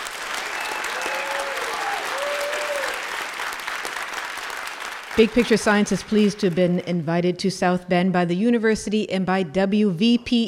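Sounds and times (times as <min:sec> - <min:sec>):
live audience applauding at the X Center, University of Notre Dame: 0:00.0 - 0:06.8
speech: 0:05.2 - 0:10.4.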